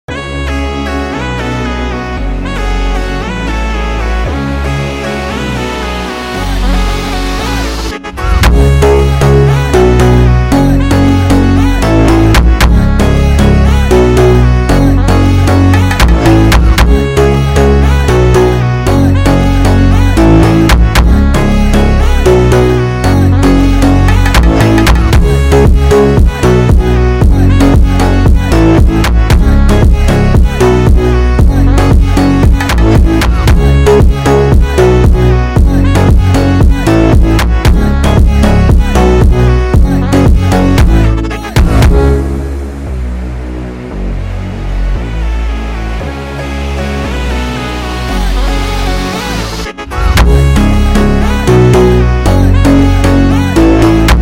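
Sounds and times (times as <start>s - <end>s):
Brazilian phonk remix: 0.1s - 54.2s.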